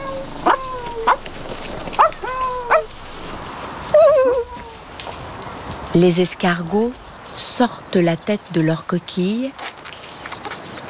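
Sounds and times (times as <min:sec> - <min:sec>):
dog yipping barks: 0:00.0 - 0:01.2, 0:02.0 - 0:02.9
dog whining: 0:00.0 - 0:03.0, 0:03.9 - 0:04.8
speech: 0:06.0 - 0:09.6.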